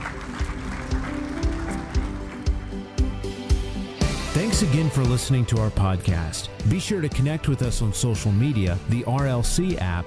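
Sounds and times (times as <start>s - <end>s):
audience hand clapping: 0.0s - 3.7s
speech: 4.6s - 10.0s.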